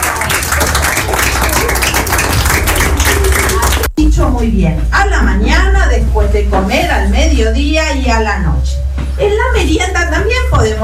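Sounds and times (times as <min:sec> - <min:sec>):
audience clapping: 0:00.0 - 0:03.9
speech: 0:04.4 - 0:10.8.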